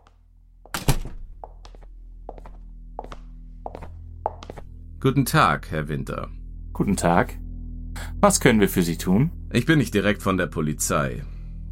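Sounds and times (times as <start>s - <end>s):
door opening: 0.7s - 1.4s
speech: 5.0s - 7.4s, 8.2s - 11.3s.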